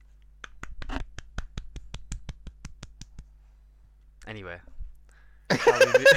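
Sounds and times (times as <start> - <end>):
one person clapping hands: 0.4 - 3.3
speech: 4.3 - 4.8, 5.5 - 6.1
laughter: 5.5 - 6.1.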